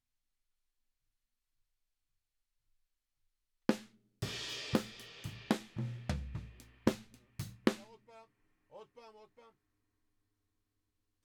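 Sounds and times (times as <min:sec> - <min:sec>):
drums: 0:03.7 - 0:08.1.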